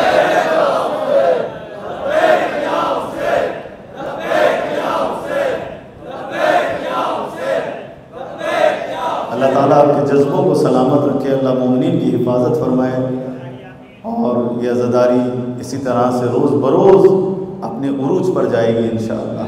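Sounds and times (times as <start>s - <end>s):
crowd chanting a religious slogan: 0.0s - 9.7s
speech: 10.1s - 13.3s, 14.6s - 17.2s, 17.9s - 19.4s.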